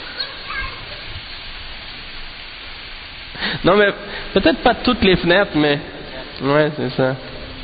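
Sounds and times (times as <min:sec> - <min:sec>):
heavy rain: 0:00.0 - 0:07.6
speech: 0:03.6 - 0:07.3.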